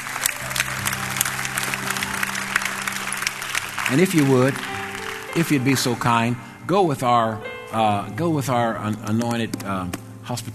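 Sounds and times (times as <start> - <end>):
audience applause: 0.0 - 6.6
speech: 3.9 - 4.7, 5.3 - 10.5.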